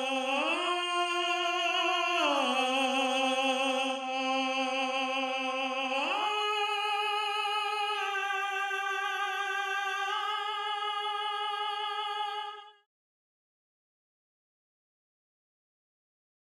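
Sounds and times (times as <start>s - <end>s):
tenor singing counterpoint: 0.0s - 12.4s.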